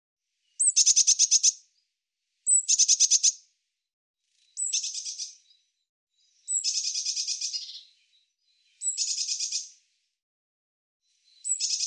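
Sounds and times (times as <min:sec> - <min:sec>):
bird singing high thin buzzy phrases: 0:00.6 - 0:01.6, 0:02.5 - 0:03.4, 0:04.5 - 0:09.8, 0:11.3 - 0:11.8.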